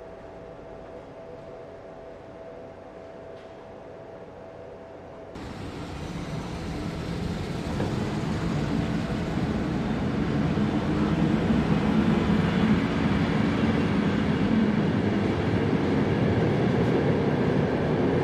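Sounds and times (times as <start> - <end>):
electric train arriving, stopping and departing: 5.4 - 18.2.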